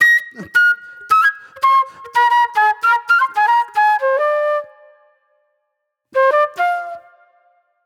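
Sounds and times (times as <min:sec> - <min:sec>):
raw funk flute: 0:00.0 - 0:04.9, 0:06.2 - 0:07.2.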